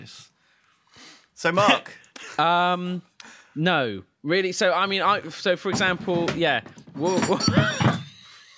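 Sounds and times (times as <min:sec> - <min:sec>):
speech: 0:01.4 - 0:07.8
solid wooden object knocked over: 0:05.7 - 0:08.2.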